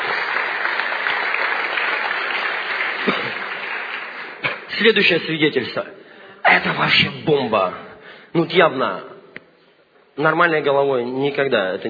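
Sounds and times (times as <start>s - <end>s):
applause: 0.0s - 4.9s
speech: 4.8s - 6.0s, 6.6s - 9.1s, 10.2s - 11.8s.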